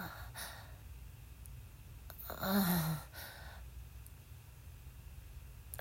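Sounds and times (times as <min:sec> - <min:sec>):
person moaning during masturbation: 0:02.2 - 0:03.1.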